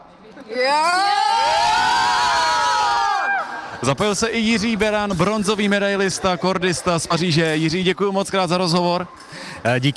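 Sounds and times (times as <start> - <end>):
speech: 0.4 - 1.0, 3.9 - 9.9
young girls cheering loudly at a fencing tournament: 0.6 - 3.8.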